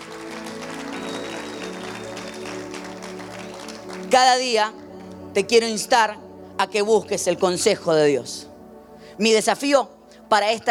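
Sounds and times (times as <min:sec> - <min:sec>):
audience applause: 0:00.0 - 0:04.3
sustained low musical tones: 0:00.0 - 0:10.6
speech: 0:04.2 - 0:08.5, 0:09.2 - 0:10.6.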